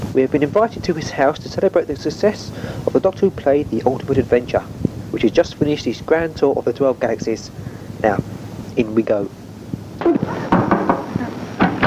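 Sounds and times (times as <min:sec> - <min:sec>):
low hum: 0:00.0 - 0:11.8
speech: 0:00.2 - 0:09.4
clunk and rattle of a door opening: 0:10.0 - 0:11.8
sharp solid knocks: 0:10.5 - 0:11.8.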